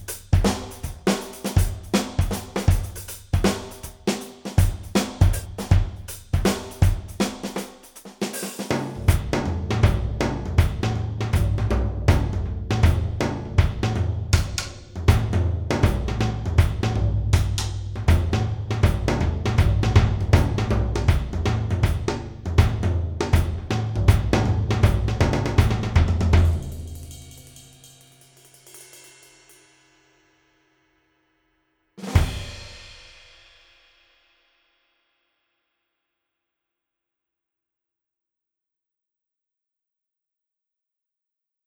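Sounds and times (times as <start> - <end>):
dancehall drums: 0.0 - 27.7, 32.0 - 33.2.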